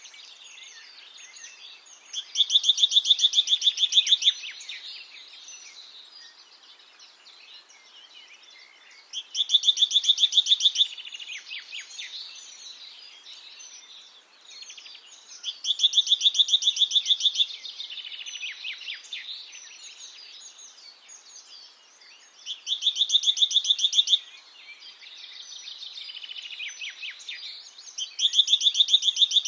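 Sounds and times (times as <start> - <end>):
great tit calls: 1.9 - 5.7, 9.0 - 12.8, 14.5 - 20.1, 22.4 - 24.3, 26.2 - 29.4.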